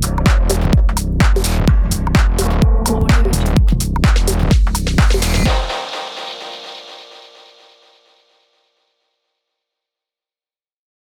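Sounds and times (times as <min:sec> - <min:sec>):
dark minimal techno: 0:00.0 - 0:08.3.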